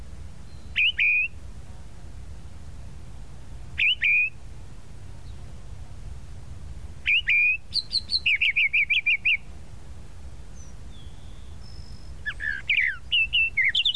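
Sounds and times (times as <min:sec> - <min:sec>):
tropical mockingbird song: 0:00.4 - 0:01.4, 0:03.8 - 0:04.4, 0:07.0 - 0:09.5, 0:10.5 - 0:13.9.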